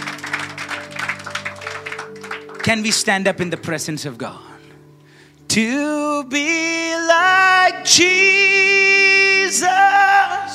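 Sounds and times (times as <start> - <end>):
church congregation clapping: 0.0 - 3.8
speech: 2.6 - 4.5, 5.5 - 10.5.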